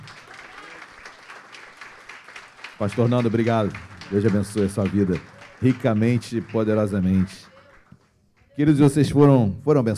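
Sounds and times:
audience applause: 0.0 - 8.6
speech: 2.8 - 7.5, 8.6 - 9.9.

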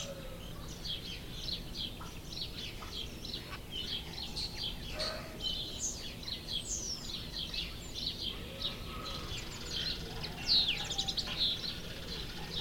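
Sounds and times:
gentle cooing of doves: 0.0 - 5.5, 8.3 - 12.6
canaries warbling and birds chirping: 0.0 - 12.6.

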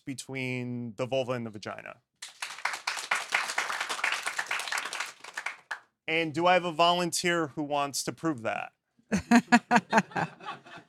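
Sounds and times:
speech: 0.0 - 2.1, 6.1 - 10.8
crowd applause: 2.2 - 5.8
laughter: 9.1 - 10.8.

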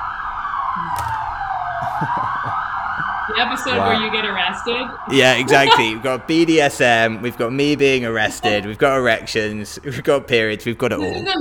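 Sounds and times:
police car siren passing outside: 0.0 - 8.8
laughter: 1.7 - 4.1, 5.1 - 11.3
speech: 3.4 - 11.4.

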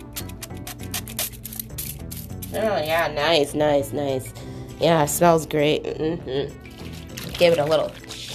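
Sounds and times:
spray bottle spraying around the house: 0.0 - 2.6
speech: 2.5 - 6.6, 7.4 - 8.0.

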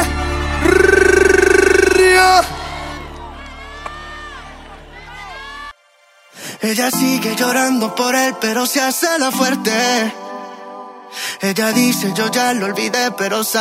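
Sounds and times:
crowd cheering and whooping: 0.0 - 5.8
speech: 6.6 - 10.2, 11.4 - 13.5.

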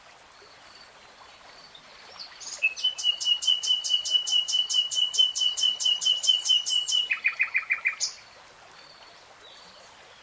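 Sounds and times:
nightingale song: 1.6 - 8.2.

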